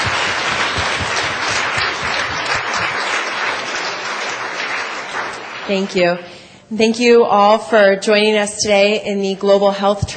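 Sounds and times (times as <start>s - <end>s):
audience applause: 0.0s - 6.0s
speech: 5.7s - 10.1s.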